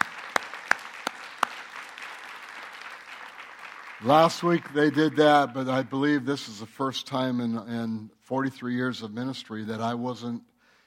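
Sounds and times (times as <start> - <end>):
audience applause: 0.0 - 6.2
speech: 4.0 - 10.5.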